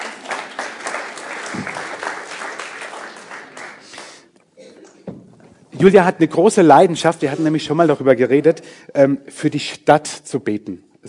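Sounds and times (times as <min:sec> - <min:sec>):
audience applause: 0:00.0 - 0:04.2
speech: 0:05.8 - 0:11.0.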